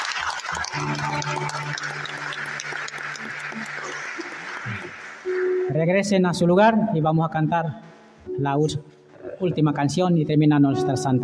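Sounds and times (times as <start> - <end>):
audience applauding: 0.0 - 5.7
speech: 0.8 - 2.2, 5.8 - 11.2.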